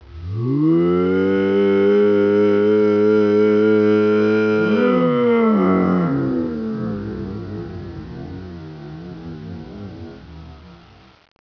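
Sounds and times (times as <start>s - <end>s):
distorted loud audio: 0.0s - 11.3s.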